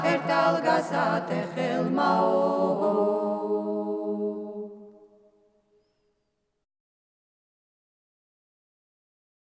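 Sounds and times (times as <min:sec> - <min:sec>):
Adjarian naduri work song singing: 0:00.0 - 0:05.0.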